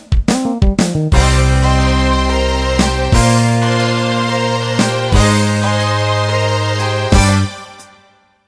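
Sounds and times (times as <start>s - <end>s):
country shuffle music: 0.1s - 7.5s.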